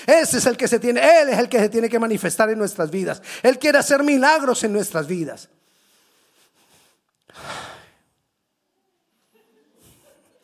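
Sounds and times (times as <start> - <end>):
speech: 0.0 - 5.7
preacher breathing deeply during a sermon: 5.7 - 8.1.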